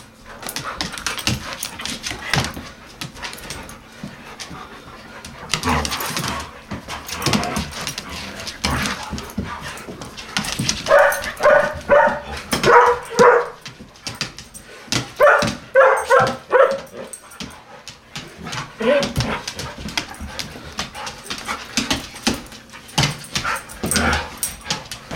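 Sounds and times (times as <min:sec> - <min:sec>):
clattering and shuffling: 0:00.1 - 0:25.1
collie barking: 0:10.9 - 0:13.6, 0:15.2 - 0:17.1.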